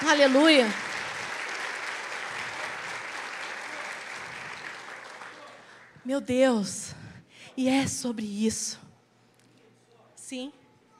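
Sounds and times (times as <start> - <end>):
audience applauding: 0.0 - 6.0
speech: 0.1 - 0.9, 6.0 - 7.0, 7.6 - 8.8, 10.3 - 10.6.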